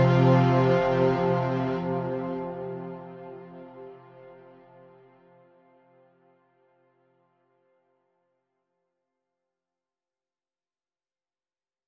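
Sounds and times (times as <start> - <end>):
mid strings: 0.0 - 4.8.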